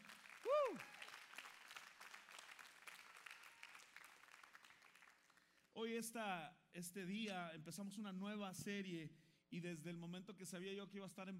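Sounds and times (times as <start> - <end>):
audience applause: 0.0 - 5.4
speech: 5.8 - 11.3.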